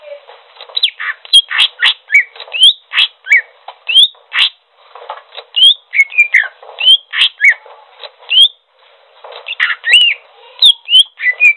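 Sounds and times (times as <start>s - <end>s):
bird singing trills: 0.8s - 4.6s, 5.6s - 7.6s, 8.3s - 8.6s, 9.5s - 11.5s.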